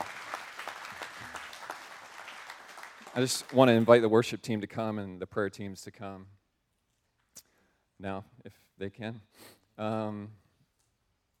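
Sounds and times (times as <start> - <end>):
church congregation clapping: 0.0 - 4.1
speech: 3.2 - 6.4, 8.0 - 10.4.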